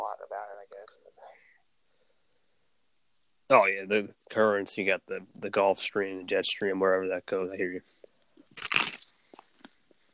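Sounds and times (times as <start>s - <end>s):
speech: 3.5s - 8.0s
crunchy Belgian waffle bite: 8.5s - 9.1s.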